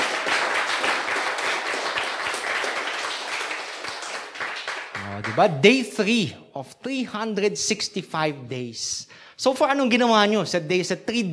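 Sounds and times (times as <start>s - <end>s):
audience clapping: 0.0s - 5.8s
speech: 5.2s - 11.3s.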